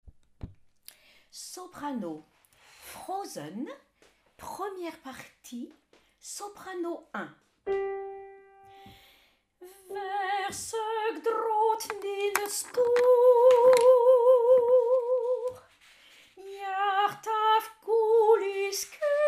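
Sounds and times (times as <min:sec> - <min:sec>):
soprano singing: 0:09.6 - 0:15.7, 0:16.4 - 0:19.2.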